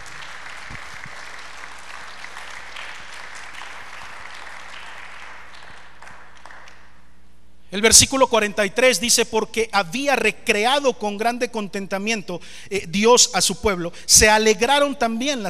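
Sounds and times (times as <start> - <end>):
audience applauding: 0.0 - 7.0
speech: 7.7 - 15.4.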